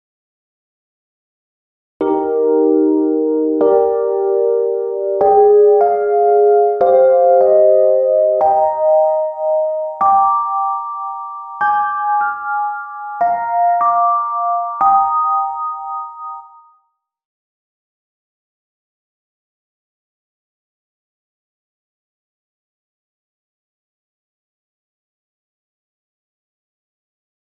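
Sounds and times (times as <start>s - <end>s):
electric piano: 2.0s - 16.8s.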